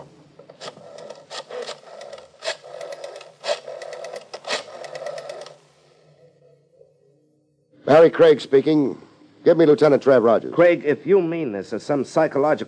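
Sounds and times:
telephone being dialed with mechanical clicking and whirring: 0:00.6 - 0:05.6
speech: 0:07.9 - 0:12.6.

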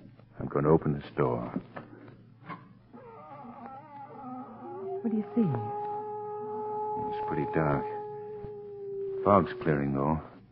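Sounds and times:
speech: 0:00.6 - 0:01.8, 0:05.0 - 0:05.8, 0:07.1 - 0:08.0, 0:09.2 - 0:10.3
cat howling: 0:02.9 - 0:10.3.

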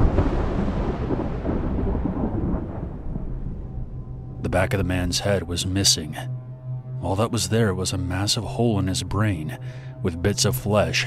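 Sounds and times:
thunder from a lightning storm: 0:00.0 - 0:06.4
speech: 0:04.5 - 0:06.4, 0:07.0 - 0:11.0.

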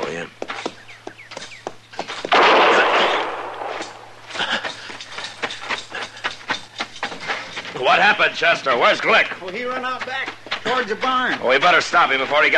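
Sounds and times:
gunshots: 0:02.3 - 0:04.2
speech: 0:08.0 - 0:12.5.

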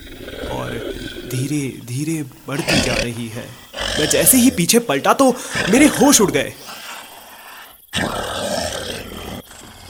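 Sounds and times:
low ambient noise: 0:00.0 - 0:09.8
werewolf growl behind the narrator: 0:00.0 - 0:09.8
speech: 0:01.3 - 0:06.8.

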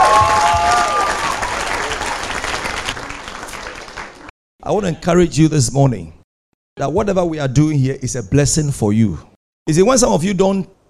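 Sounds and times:
audience clapping: 0:00.0 - 0:04.3
speech: 0:04.7 - 0:06.2, 0:06.8 - 0:10.8.

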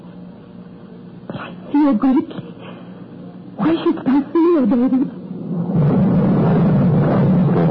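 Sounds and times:
speech: 0:01.8 - 0:02.4, 0:04.7 - 0:05.1
deep continuous rumbling of storm thunder: 0:05.4 - 0:07.6.

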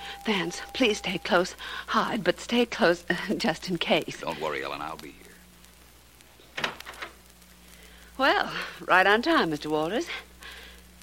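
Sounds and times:
speech: 0:00.2 - 0:05.3, 0:08.2 - 0:10.3
apartment door: 0:06.6 - 0:07.1.

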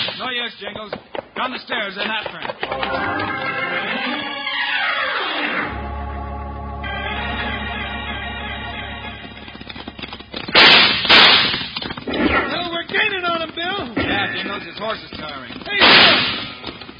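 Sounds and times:
speech: 0:00.3 - 0:04.2, 0:12.9 - 0:16.4
sweeping falling tones: 0:02.7 - 0:09.5
gunshots in a radio drama shootout: 0:10.4 - 0:12.6, 0:15.7 - 0:16.7.

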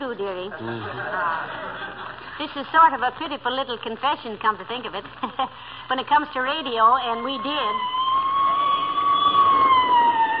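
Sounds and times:
speech: 0:00.2 - 0:08.1
laughter: 0:00.5 - 0:02.4
police squad car passing: 0:07.7 - 0:10.3.

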